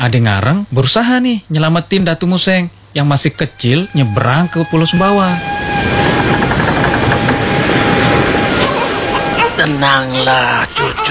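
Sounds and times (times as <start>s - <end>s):
speech: 0.0s - 5.6s, 9.7s - 11.0s
faint even mechanical whine: 0.1s - 11.0s
ship's engine droning at sea: 3.4s - 11.0s.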